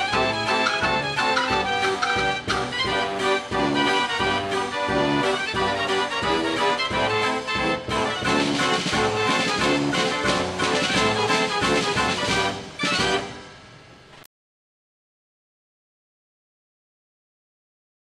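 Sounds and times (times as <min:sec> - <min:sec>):
Dutch street barrel organ playing: 0:00.0 - 0:13.6.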